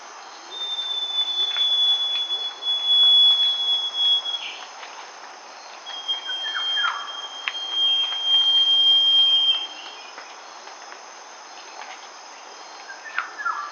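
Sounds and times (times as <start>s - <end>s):
northern scrub robin giving a long thin whistle: 0.4s - 4.6s, 5.9s - 10.1s.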